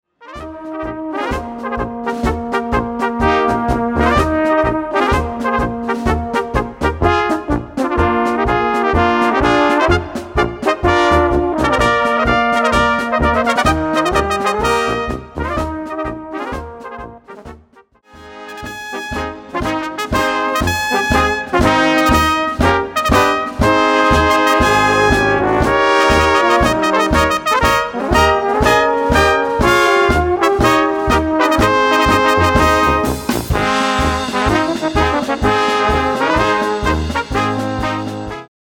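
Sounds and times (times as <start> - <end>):
brass band music: 0.1 - 38.5.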